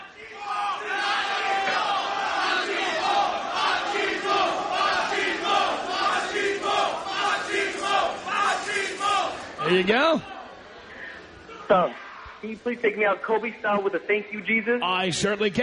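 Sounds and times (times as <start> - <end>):
large crowd at a Cinco de Mayo party chanting in unison: 0.0 - 10.9
speech: 9.7 - 10.3, 11.7 - 15.6.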